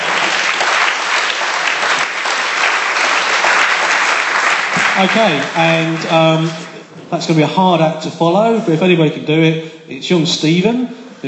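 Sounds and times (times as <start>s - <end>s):
audience applause: 0.0s - 6.8s
speech: 5.0s - 11.2s.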